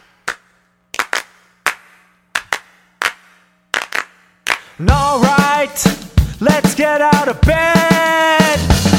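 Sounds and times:
group clapping: 0.0 - 4.8
speech: 4.8 - 8.8.

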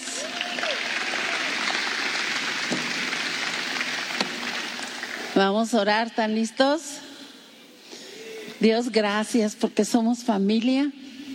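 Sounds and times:
crowd clapping: 0.0 - 5.4
speech: 5.4 - 7.0, 8.6 - 11.0.

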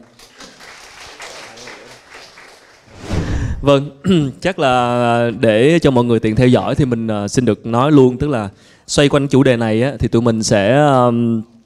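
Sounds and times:
audience applause: 0.0 - 2.9
speech: 3.6 - 11.5.

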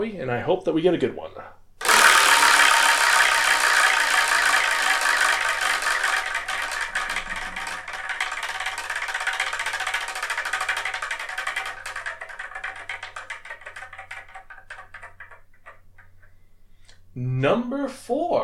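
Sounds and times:
speech: 0.0 - 1.6, 17.4 - 18.4
prize wheel being spun, ticking: 1.8 - 16.3.

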